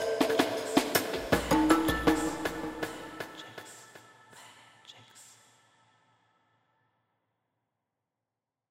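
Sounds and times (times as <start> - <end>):
ambient music: 0.0 - 4.6.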